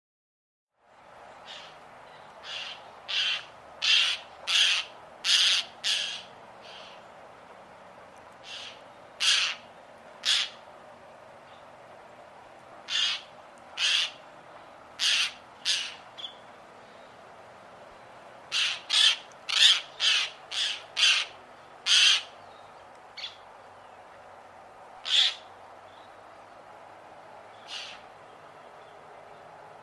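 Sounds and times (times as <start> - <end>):
bird squawking: 2.4 - 7.0, 8.4 - 9.6, 10.2 - 10.6, 12.9 - 14.2, 15.0 - 16.4, 18.5 - 22.4, 25.0 - 25.5, 27.6 - 28.0.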